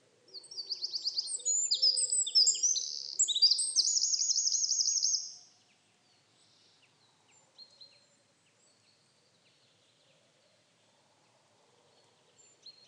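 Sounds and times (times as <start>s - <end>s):
Eurasian wren Troglodytes troglodytes singing: 0.3s - 5.4s.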